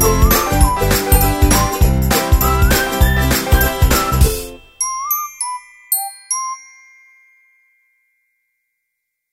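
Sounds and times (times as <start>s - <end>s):
upbeat ukulele music: 0.0s - 5.1s.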